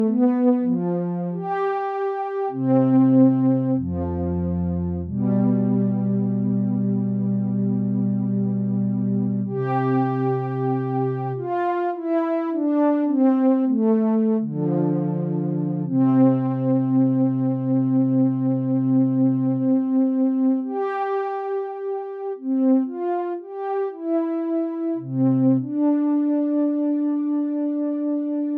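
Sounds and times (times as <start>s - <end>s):
improvised lead melody: 0.0s - 28.5s.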